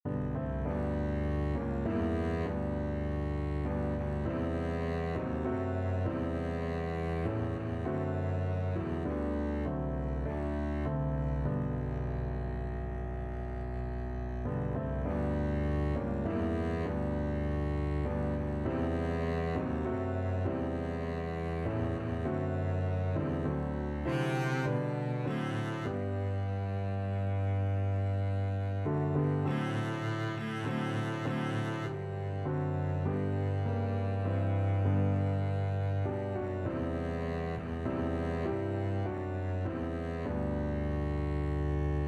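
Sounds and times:
double bass: 0:00.0 - 0:42.0.

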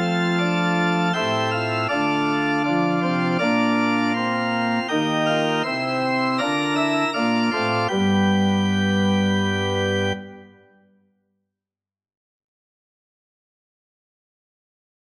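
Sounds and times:
organ: 0:00.0 - 0:10.8.

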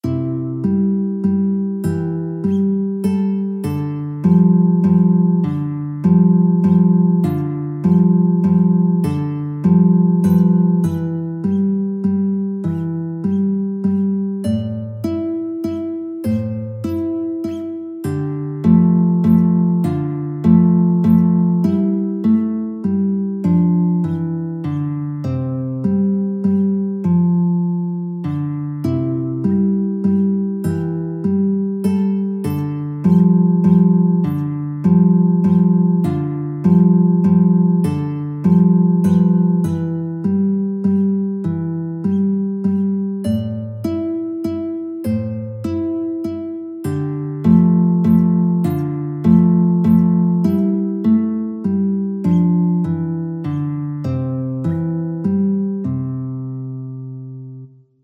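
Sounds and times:
guitar: 0:00.0 - 0:58.0.

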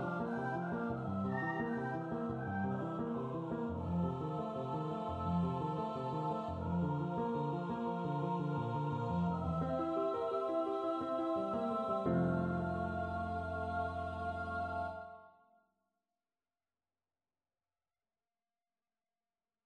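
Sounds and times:
vocal duet: 0:00.0 - 0:15.2.

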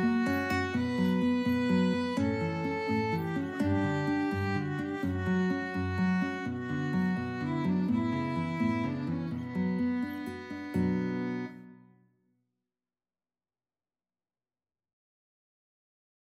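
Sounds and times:
Spanish violin and guitar duet: 0:00.0 - 0:11.9.

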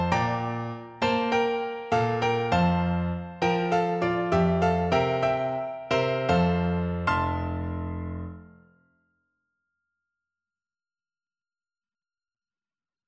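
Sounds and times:
piano piece: 0:00.0 - 0:08.8.

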